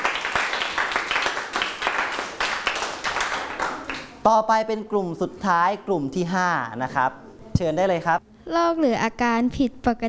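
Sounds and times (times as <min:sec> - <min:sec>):
audience clapping: 0:00.0 - 0:04.2
speech: 0:04.2 - 0:10.0.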